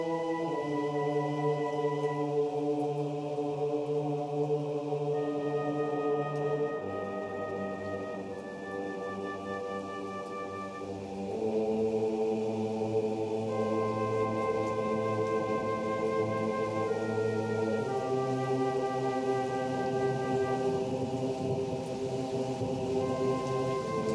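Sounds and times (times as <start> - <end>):
clarinet: 0.0 - 3.2, 5.0 - 11.8, 13.4 - 21.4, 23.0 - 24.1
flute: 0.0 - 24.1
rain: 0.0 - 24.1.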